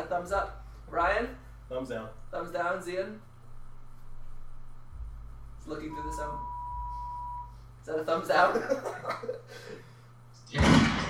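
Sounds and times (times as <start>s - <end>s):
speech: 0.1s - 3.3s, 5.6s - 6.5s, 7.9s - 9.9s
gunshot sound effect: 10.5s - 11.0s.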